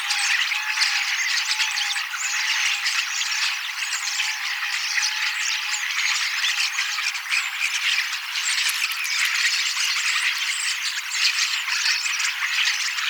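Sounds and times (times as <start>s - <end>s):
common starlings chattering: 0.1s - 13.0s.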